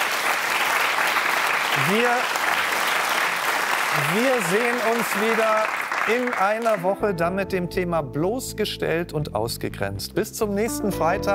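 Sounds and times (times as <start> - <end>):
audience applause: 0.0 - 7.0
speech: 1.8 - 2.4, 3.9 - 11.3.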